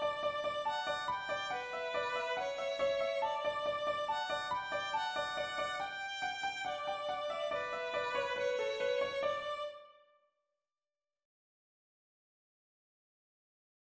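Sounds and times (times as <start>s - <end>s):
melody with harmony: 0.0s - 9.8s.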